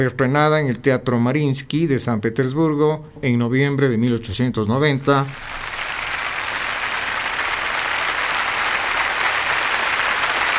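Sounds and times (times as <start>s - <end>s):
speech: 0.0s - 5.7s
concert audience applause: 5.2s - 10.5s.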